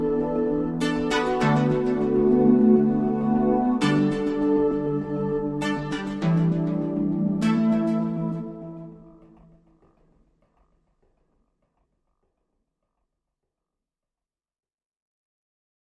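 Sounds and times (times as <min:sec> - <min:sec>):
synth underscore: 0:00.0 - 0:12.2.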